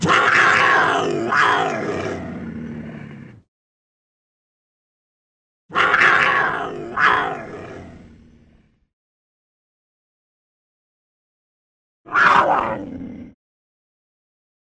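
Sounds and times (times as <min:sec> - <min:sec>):
panther roaring: 0:00.0 - 0:03.5, 0:05.7 - 0:08.8, 0:12.1 - 0:13.4.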